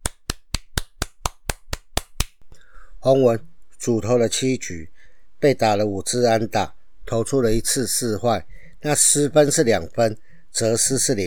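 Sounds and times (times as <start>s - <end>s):
person clapping: 0.0s - 2.4s
speech: 3.0s - 11.2s.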